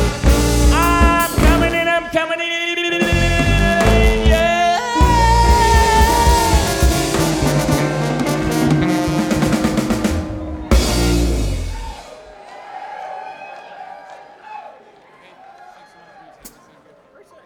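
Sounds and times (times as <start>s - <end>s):
live broadcast music mix: 0.0s - 2.2s, 3.0s - 12.4s.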